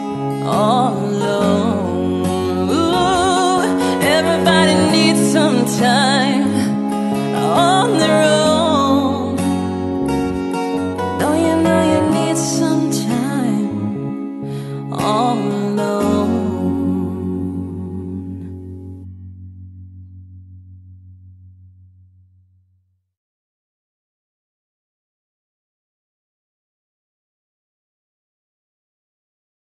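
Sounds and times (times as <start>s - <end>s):
acoustic cover song: 0.0s - 20.1s.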